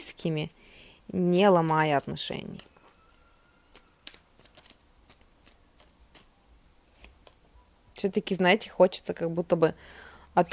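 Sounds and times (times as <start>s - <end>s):
speech: 0.2s - 2.7s, 8.0s - 10.5s
tarot cards being shuffled and spilling out: 1.4s - 7.2s.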